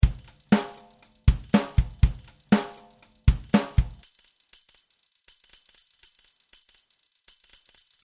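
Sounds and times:
beat with delay effect: 0.0 - 4.0.

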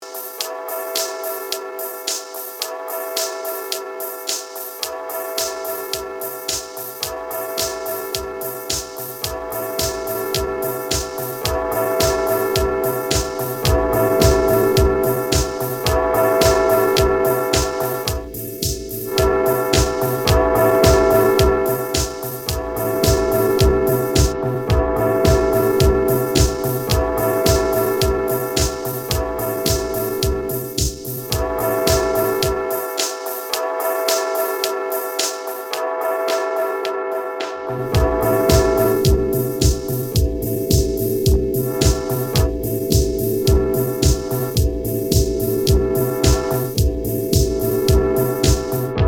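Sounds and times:
disco bells: 0.0 - 37.3, 37.9 - 48.9.

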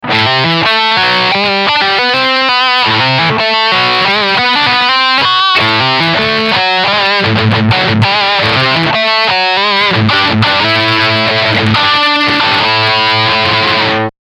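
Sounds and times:
electric guitar riff through a Shawbucker pickup: 0.0 - 14.1.

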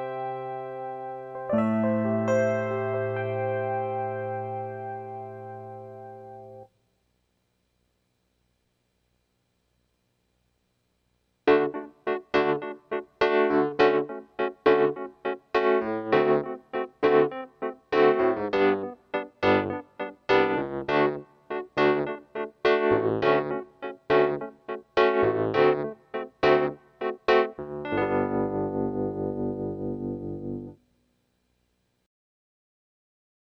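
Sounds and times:
electric piano: 0.0 - 6.7, 11.5 - 30.8.

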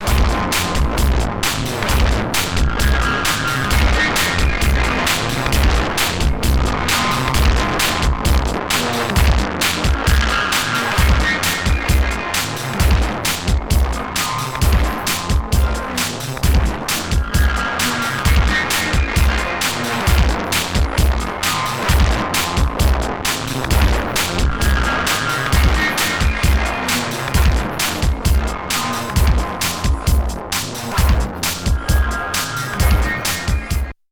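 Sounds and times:
synthesizer track: 0.0 - 34.0.

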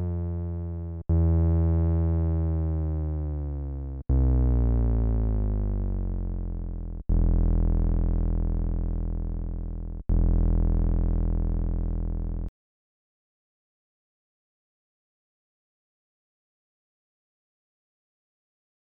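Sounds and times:
Korg Nubass sawtooth synth bass: 0.0 - 12.5.

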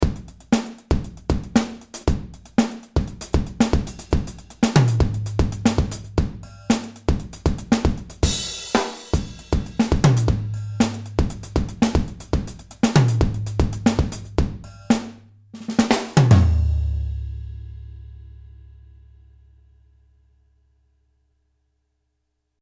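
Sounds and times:
funk drums: 0.0 - 17.4.

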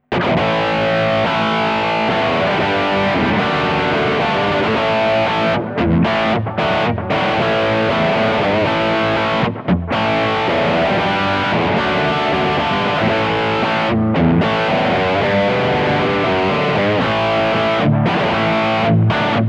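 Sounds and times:
Kemper dirty rhythm guitar tone: 0.0 - 19.4.

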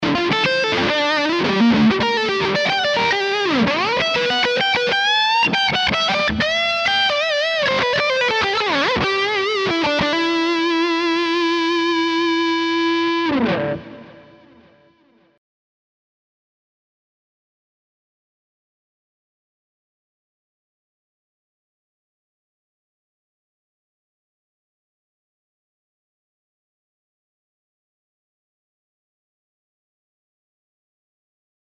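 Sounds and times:
Les Paul guitar modern bridge pickup high-gain lead: 0.0 - 15.4.

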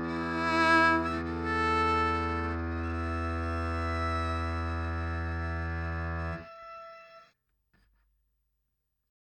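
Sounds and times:
cello: 0.0 - 7.3.

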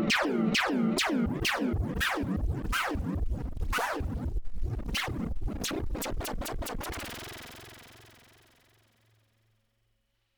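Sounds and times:
Mooer D7 Galaxy Delay pedal effect: 0.1 - 8.1.

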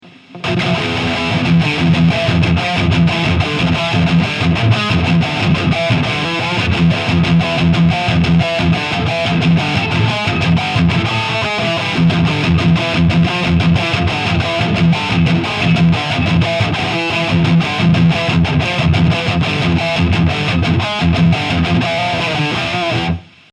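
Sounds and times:
Diezel amplifier red channel: 0.0 - 23.5.

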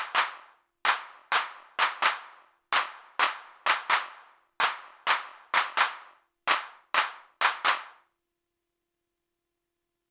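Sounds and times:
hand claps: 0.0 - 8.0.

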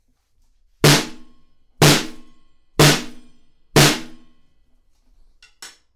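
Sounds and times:
snare drum: 0.8 - 4.3.

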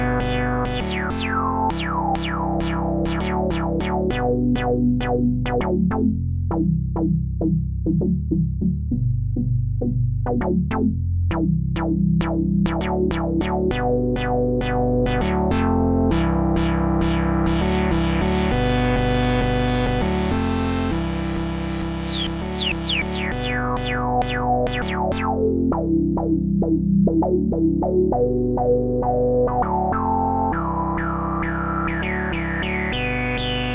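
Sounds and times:
SP12 sampler chords pitched down: 0.0 - 33.7.

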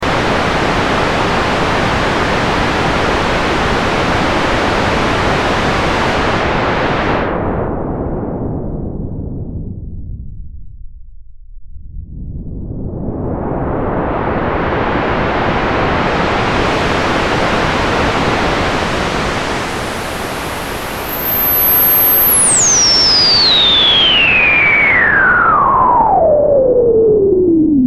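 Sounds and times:
SH01a noise with LFO sample and hold: 0.0 - 27.8.

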